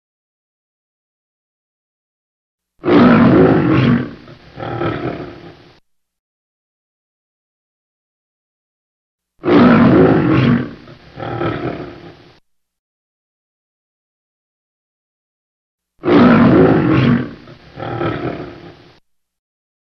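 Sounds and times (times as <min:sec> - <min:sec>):
lion roaring: 0:02.8 - 0:05.8, 0:09.4 - 0:12.4, 0:16.0 - 0:19.0.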